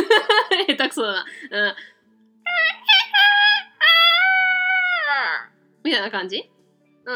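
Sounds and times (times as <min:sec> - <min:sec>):
laughter: 0:00.0 - 0:00.8
speech: 0:00.5 - 0:02.0, 0:05.8 - 0:06.5
person imitating rooster crow: 0:03.2 - 0:05.5.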